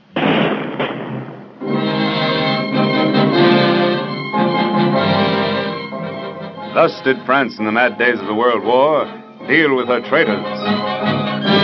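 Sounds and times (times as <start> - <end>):
firing squad rifle volley at a wartime French execution: 0.0 - 2.2
sustained dramatic music: 1.6 - 11.6
speech: 6.8 - 11.2.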